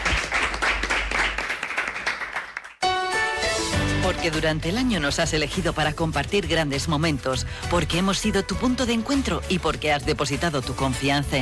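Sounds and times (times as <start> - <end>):
audience applause: 0.0 - 2.8
speech: 4.1 - 11.4.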